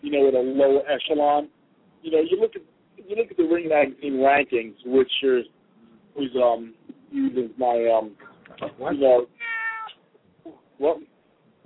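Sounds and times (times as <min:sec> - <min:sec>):
speech: 0:00.1 - 0:05.6, 0:06.2 - 0:09.4, 0:10.5 - 0:11.1
male cat meowing: 0:09.3 - 0:10.0.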